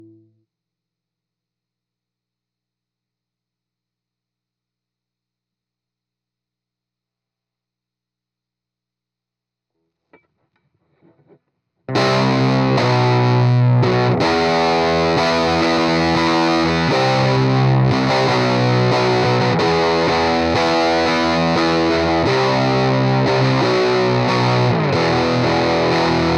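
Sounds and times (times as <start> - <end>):
heavy electric guitar: 11.9 - 26.3.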